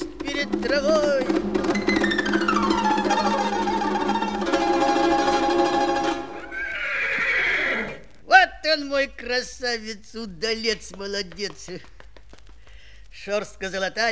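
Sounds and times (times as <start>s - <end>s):
speech: 0.4s - 1.4s, 8.8s - 12.0s, 13.2s - 14.1s
horse neighing: 1.1s - 8.2s.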